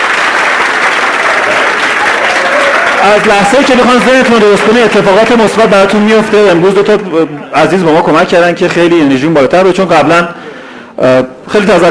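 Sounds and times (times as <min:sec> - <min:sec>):
audience applause: 0:00.0 - 0:07.5
speech: 0:03.0 - 0:10.4, 0:11.0 - 0:11.8.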